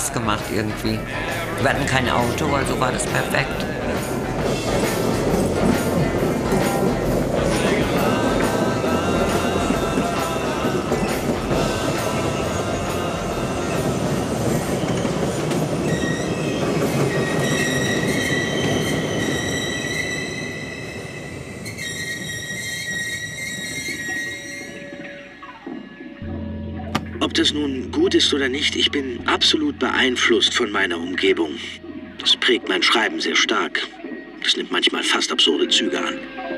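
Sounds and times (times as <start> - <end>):
S-Bahn commuter train rolling along the rails: 0.0 - 32.6
speech: 0.2 - 5.4, 27.4 - 31.8, 32.5 - 36.4
S-Bahn train squealing and whining as it slows: 4.4 - 26.2.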